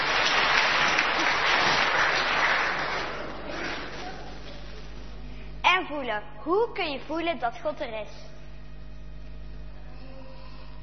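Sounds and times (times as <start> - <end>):
audience applauding: 0.0 - 4.6
speech: 5.9 - 8.3.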